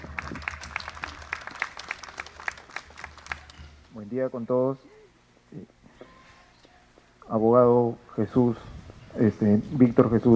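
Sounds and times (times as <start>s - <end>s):
applause: 0.0s - 3.9s
speech: 4.0s - 5.8s, 7.3s - 10.3s.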